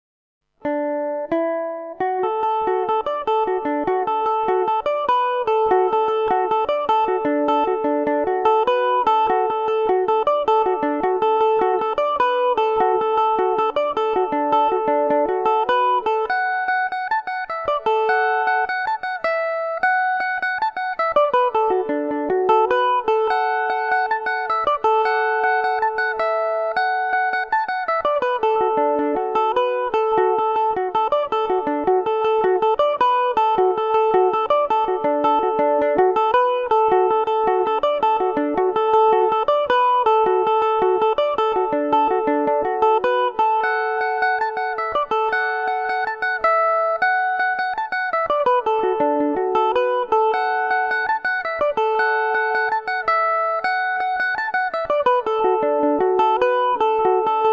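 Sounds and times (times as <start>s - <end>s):
Irish mandolin tune in D major: 0.6s - 57.5s.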